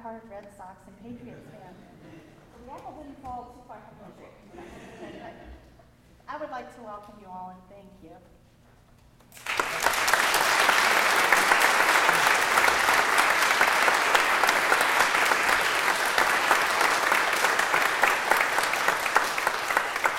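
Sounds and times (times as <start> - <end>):
speech: 0.2 - 5.6, 6.3 - 8.4
audience applause: 9.4 - 20.1.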